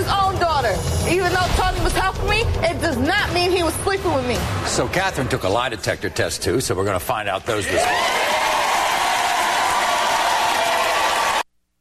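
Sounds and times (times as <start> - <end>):
speech: 0.6 - 8.6
round of applause: 7.7 - 11.5.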